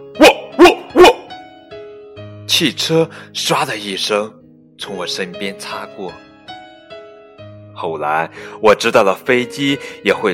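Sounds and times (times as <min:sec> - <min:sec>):
dog barking: 0:00.2 - 0:01.3
speech: 0:02.5 - 0:06.2, 0:07.8 - 0:10.3.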